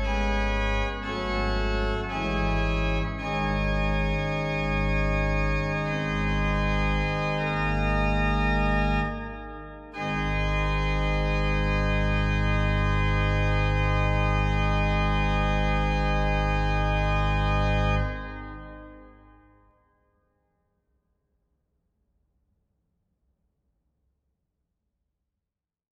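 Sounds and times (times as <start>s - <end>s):
organ postlude in G minor: 0.0s - 19.2s.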